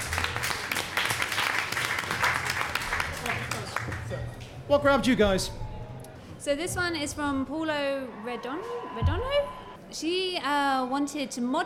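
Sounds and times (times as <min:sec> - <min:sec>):
audience applause: 0:00.0 - 0:04.4
speech: 0:04.7 - 0:05.6, 0:06.4 - 0:11.6.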